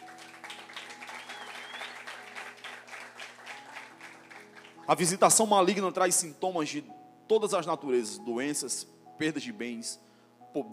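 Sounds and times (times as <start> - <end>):
audience applause: 0.0 - 4.8
speech: 4.9 - 10.7.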